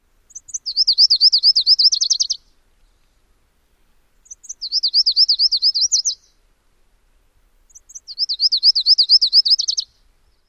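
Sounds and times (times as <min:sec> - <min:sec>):
bird songs: 0:00.0 - 0:03.2, 0:03.9 - 0:06.4, 0:07.6 - 0:10.4.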